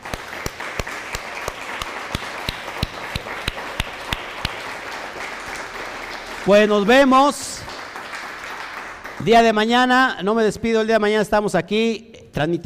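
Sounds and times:
loud applause: 0.0s - 9.7s
speech: 6.4s - 7.5s, 9.2s - 12.6s.

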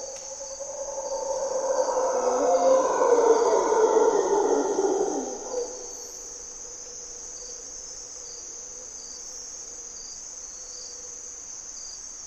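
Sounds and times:
mantled howler monkey howling: 0.1s - 6.0s.

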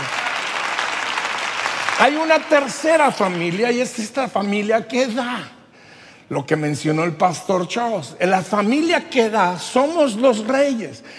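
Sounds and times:
audience applause: 0.0s - 4.0s
speech: 2.0s - 5.6s, 6.3s - 11.1s.

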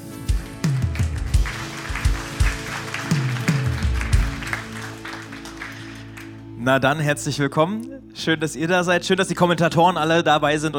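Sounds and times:
audience applause: 0.6s - 6.4s
speech: 6.6s - 10.7s.

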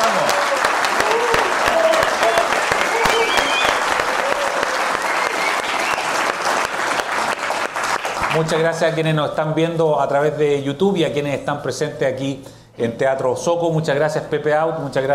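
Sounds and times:
faint cheers and whistles: 0.0s - 6.4s
live audience applause: 0.0s - 8.6s
speech: 8.4s - 15.1s.

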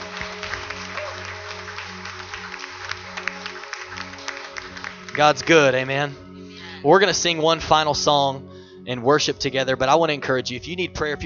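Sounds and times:
audience applause: 0.0s - 6.0s
speech: 5.2s - 6.2s, 6.8s - 11.2s.

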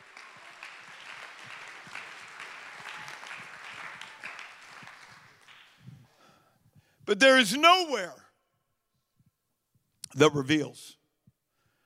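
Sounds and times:
audience clapping hands: 0.0s - 6.2s
speech: 7.1s - 8.2s, 10.2s - 11.0s.

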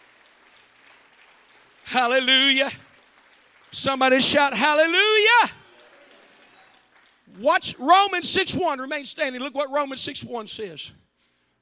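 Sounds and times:
crowd clapping: 0.0s - 8.2s
speech: 1.9s - 2.8s, 3.8s - 5.6s, 7.3s - 11.1s.

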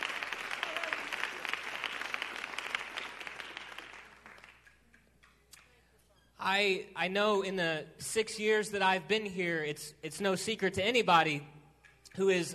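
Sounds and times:
audience hand clapping: 0.0s - 5.8s
speech: 6.4s - 11.6s, 12.2s - 12.5s.

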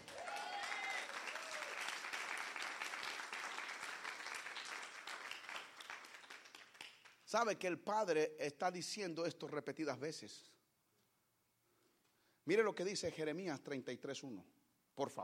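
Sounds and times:
audience applauding: 0.0s - 7.2s
speech: 7.3s - 10.5s, 12.5s - 15.2s.

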